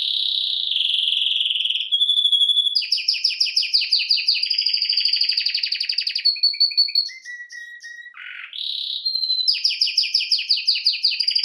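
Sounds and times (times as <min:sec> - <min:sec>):
domestic canary singing: 0:00.0 - 0:11.4.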